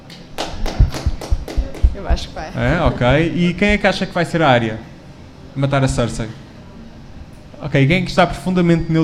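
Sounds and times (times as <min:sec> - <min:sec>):
few people clapping: 0:00.1 - 0:02.0
speech: 0:02.1 - 0:04.9, 0:05.6 - 0:06.4, 0:07.6 - 0:09.0.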